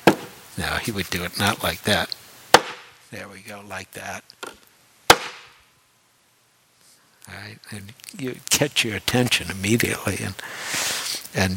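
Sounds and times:
speech: 0:00.6 - 0:02.2, 0:03.1 - 0:04.6, 0:07.3 - 0:11.5
stick striking a hard surface: 0:02.5 - 0:02.9, 0:04.4 - 0:05.5.

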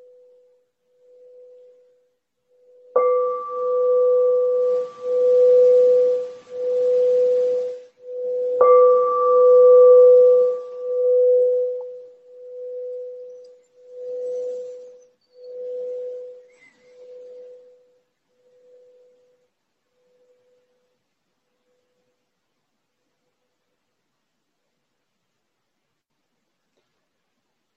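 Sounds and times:
meditation bell ringing: 0:01.0 - 0:20.6.

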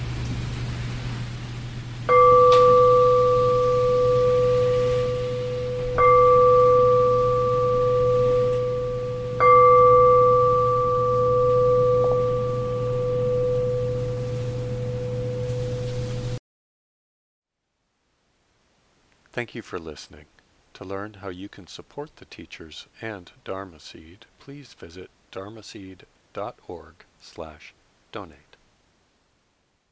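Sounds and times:
meditation bell ringing: 0:02.1 - 0:16.4
speech: 0:19.4 - 0:28.5.

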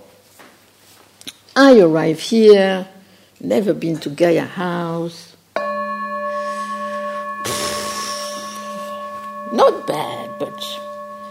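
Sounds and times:
speech: 0:01.6 - 0:05.3
meditation bell ringing: 0:05.6 - 0:11.2.

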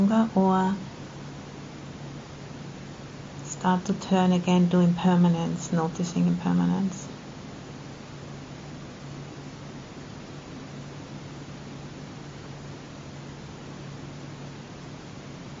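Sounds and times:
speech: 0:00.0 - 0:00.9, 0:03.6 - 0:07.0
air conditioning hum: 0:00.0 - 0:15.5.

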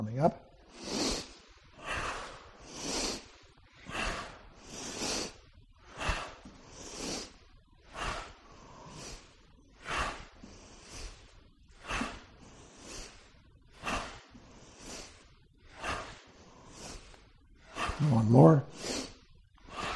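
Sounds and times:
speech: 0:00.2 - 0:01.0, 0:18.2 - 0:18.9
slow breaths through the nose during a Ping Chi breathing exercise: 0:00.6 - 0:19.9.

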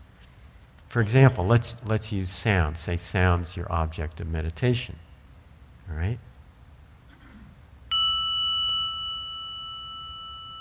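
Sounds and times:
speech: 0:00.9 - 0:05.0, 0:05.9 - 0:06.3
meditation bell ringing: 0:07.9 - 0:10.6.

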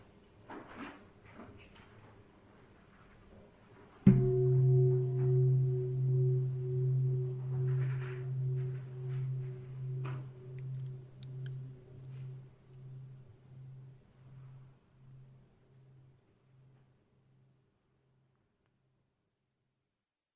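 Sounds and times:
meditation gong strike: 0:04.1 - 0:13.9.

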